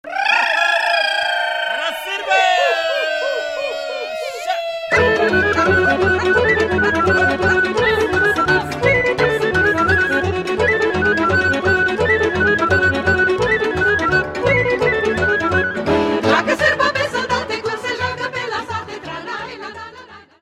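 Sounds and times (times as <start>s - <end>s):
laughter: 0.1s - 8.8s
Romanian sirba folk dance music: 1.8s - 20.0s.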